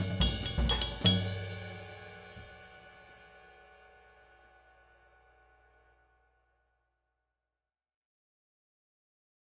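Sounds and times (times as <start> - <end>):
21 A Zildjian cymbal: 0.0 - 5.5.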